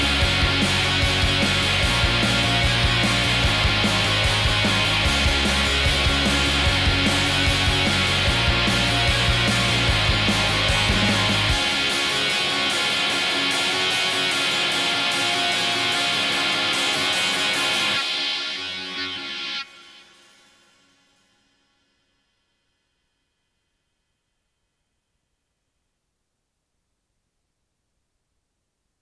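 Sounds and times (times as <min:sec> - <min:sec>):
rock music from gold plated tape: 0:00.0 - 0:19.8.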